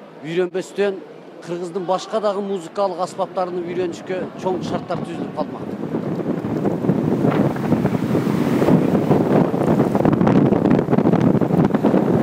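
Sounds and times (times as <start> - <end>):
speech: 0.2 - 6.0
Mistral north wind of Provence around Avignon buffeting the microphone: 3.0 - 12.2.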